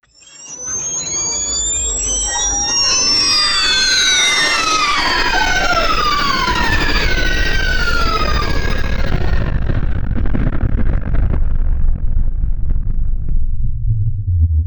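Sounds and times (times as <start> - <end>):
electrical power surge: 0.1 - 14.5.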